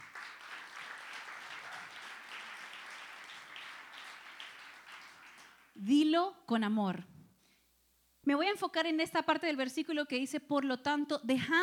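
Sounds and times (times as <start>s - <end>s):
crowd applauding: 0.0s - 5.8s
speech: 5.8s - 7.1s, 8.3s - 11.6s.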